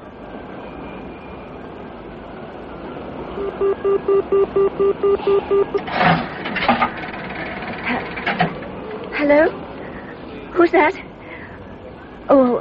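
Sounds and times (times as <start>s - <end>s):
train travelling on rails: 0.0s - 12.5s
evenly spaced tonal pulses: 3.4s - 6.9s
speech: 3.6s - 6.2s, 9.2s - 9.6s, 10.6s - 11.1s, 12.3s - 12.5s
louder clattering knocks and bumps: 5.8s - 9.1s.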